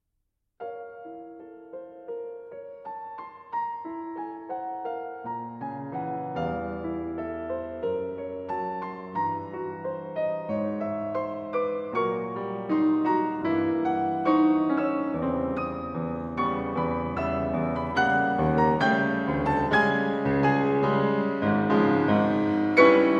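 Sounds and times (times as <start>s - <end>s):
piano caprice in B-flat minor: 0.6s - 23.1s.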